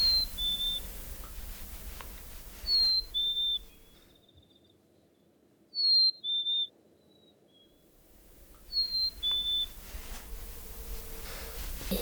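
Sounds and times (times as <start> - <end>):
person whistling an imitation of birdsong: 0.0 - 3.8, 8.7 - 12.0
soft hiss: 0.0 - 4.0, 8.1 - 12.0.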